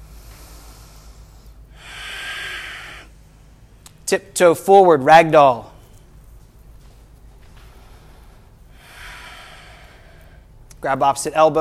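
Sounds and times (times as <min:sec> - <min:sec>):
ujjayi breathing through the nose during yoga practice: 0:00.0 - 0:03.3, 0:07.6 - 0:10.6
speech: 0:04.1 - 0:05.7, 0:10.8 - 0:11.5.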